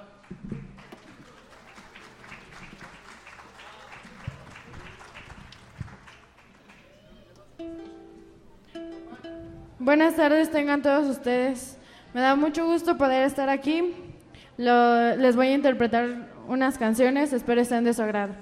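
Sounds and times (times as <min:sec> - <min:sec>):
audience applause: 0:00.8 - 0:07.6
speech: 0:09.8 - 0:14.0, 0:14.6 - 0:18.4.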